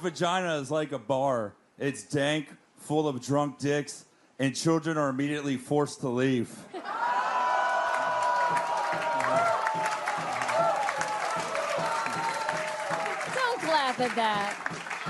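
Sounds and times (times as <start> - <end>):
speech: 0.0 - 7.2, 14.0 - 14.8
audience applause: 7.0 - 15.0.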